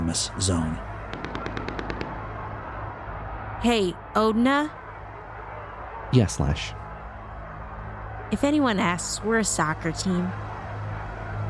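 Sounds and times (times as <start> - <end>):
speech: 0.1 - 0.9, 3.6 - 4.8, 6.1 - 6.8, 8.3 - 10.5
machine gun fire: 1.1 - 2.4.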